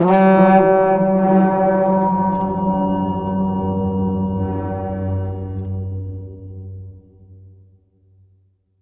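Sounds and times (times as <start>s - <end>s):
horn: 0.0s - 5.9s.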